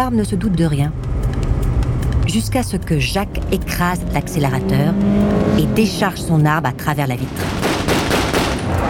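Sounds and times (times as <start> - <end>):
speech: 0.0 - 1.2, 2.3 - 7.6
exchange of gunfire: 7.3 - 8.8.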